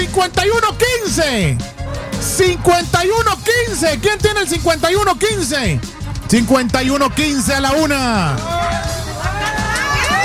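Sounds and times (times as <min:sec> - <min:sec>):
speech: 0:00.2 - 0:08.9
lively crowd cheering and shouting: 0:01.8 - 0:03.7, 0:06.4 - 0:10.2
scattered clapping: 0:06.8 - 0:10.2.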